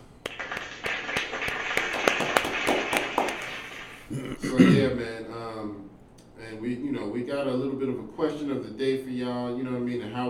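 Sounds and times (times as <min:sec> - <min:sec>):
applause: 0:00.0 - 0:04.1
speech: 0:04.4 - 0:05.8, 0:06.5 - 0:10.2.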